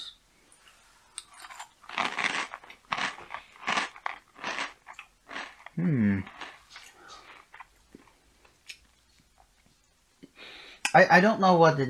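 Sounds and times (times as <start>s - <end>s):
crunching while tasting a snack: 1.2s - 8.8s
speech: 5.8s - 6.4s, 10.9s - 11.8s.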